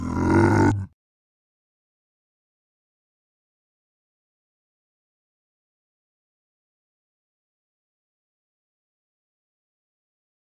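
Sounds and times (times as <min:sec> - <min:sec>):
angry zombie pig: 0:00.0 - 0:01.0.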